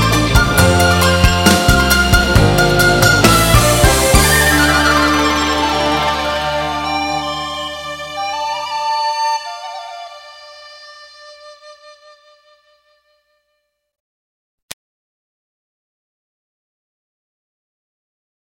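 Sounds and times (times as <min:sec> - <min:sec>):
C-Pop hit songs: 0:00.0 - 0:11.5.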